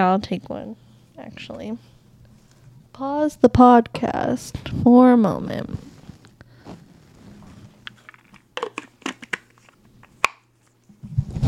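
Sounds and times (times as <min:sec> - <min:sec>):
speech: 0:00.0 - 0:01.9, 0:03.0 - 0:05.9
chewing a probiotic tablet near the microphone: 0:07.9 - 0:10.4.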